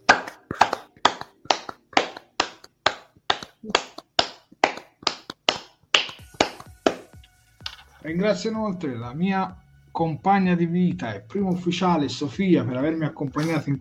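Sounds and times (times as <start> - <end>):
hands clapping: 0.0 - 7.2
speech: 8.0 - 13.7.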